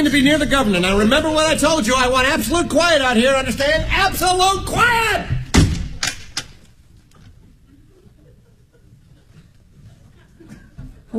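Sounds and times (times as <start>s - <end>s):
speech: 0.0s - 5.4s
door slamming shut: 4.2s - 6.6s
door lock clicking: 5.5s - 7.3s
laughter: 7.6s - 11.1s.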